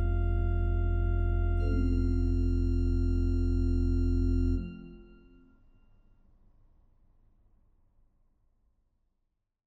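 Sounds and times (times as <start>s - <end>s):
organ verset: 0.0s - 5.5s.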